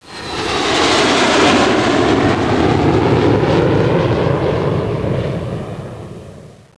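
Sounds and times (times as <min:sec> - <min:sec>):
jet aircraft: 0:00.0 - 0:06.7.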